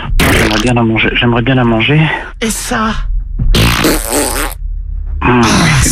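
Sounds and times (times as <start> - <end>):
fart: 0.2 - 0.7, 3.5 - 4.6
speech: 0.7 - 3.7, 5.3 - 5.8.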